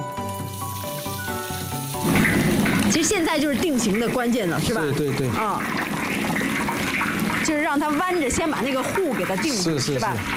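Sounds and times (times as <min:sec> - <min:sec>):
whole battered fish deep-frying in hot oil: 0:00.0 - 0:10.3
speech: 0:02.9 - 0:06.0, 0:07.5 - 0:10.3.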